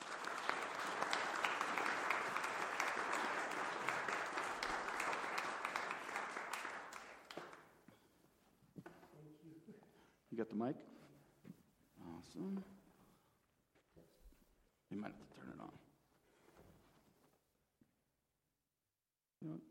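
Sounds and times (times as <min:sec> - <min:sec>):
audience applause welcoming a speaker: 0:00.0 - 0:07.7
speech: 0:10.4 - 0:10.9, 0:12.4 - 0:12.8, 0:15.0 - 0:15.3.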